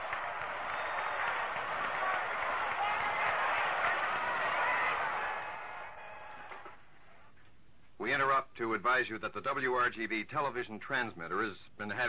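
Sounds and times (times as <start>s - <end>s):
baseball crowd cheering: 0.0s - 7.2s
speech: 8.2s - 12.0s.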